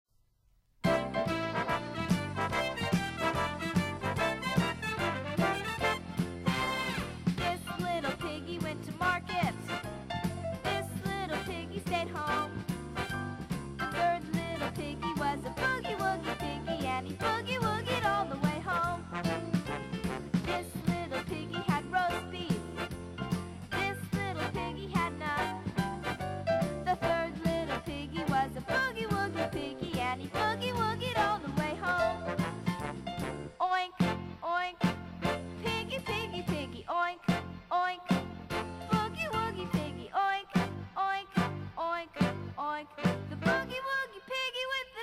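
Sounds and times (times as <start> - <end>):
boogie woogie music: 0.8 - 44.1.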